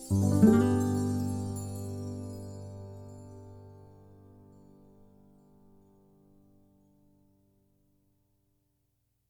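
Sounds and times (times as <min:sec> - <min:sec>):
strings: 0:00.0 - 0:04.7.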